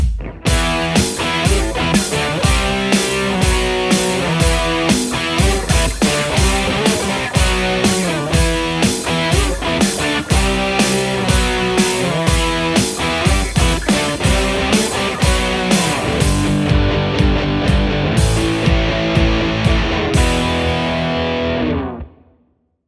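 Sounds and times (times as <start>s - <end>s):
Telecaster electric guitar: 0.2s - 22.3s.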